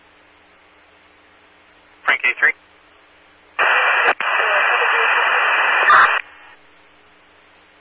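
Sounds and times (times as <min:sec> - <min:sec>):
heavy radio static: 0:02.1 - 0:02.6, 0:03.6 - 0:06.6
speech: 0:02.2 - 0:02.7.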